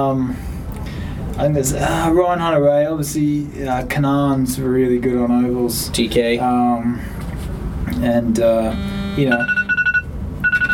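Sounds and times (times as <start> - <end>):
speech: 0.0 - 0.5, 1.4 - 7.2, 7.9 - 9.6
electronic timer beeping: 8.7 - 10.7.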